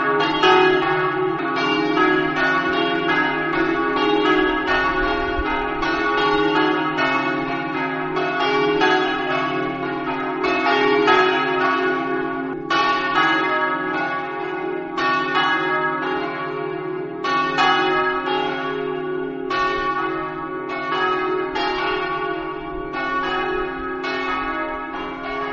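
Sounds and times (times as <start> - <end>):
church bells ringing in Osoppo: 0.0 - 25.5.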